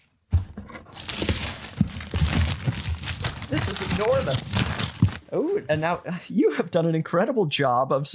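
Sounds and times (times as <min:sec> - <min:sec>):
gift wrapping paper crinkling and tearing on a heavily taped present: 0:00.9 - 0:05.3
speech: 0:03.5 - 0:04.6, 0:05.3 - 0:08.1.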